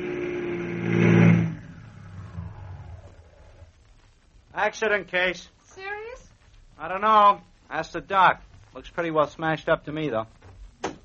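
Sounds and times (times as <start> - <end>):
ambulance engine pulling up and stopping: 0.0 - 3.2
speech: 4.6 - 5.6, 6.8 - 10.4.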